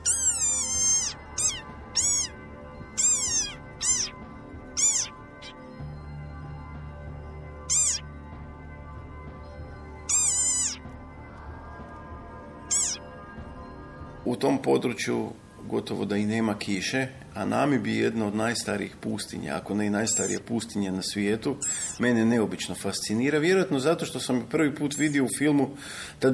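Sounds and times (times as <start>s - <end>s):
Namib desert rain frog croaking: 0.0s - 4.2s, 4.8s - 5.6s, 7.7s - 8.0s, 10.1s - 10.8s, 12.7s - 13.0s, 20.0s - 20.4s, 21.6s - 22.0s
speech: 14.4s - 26.3s.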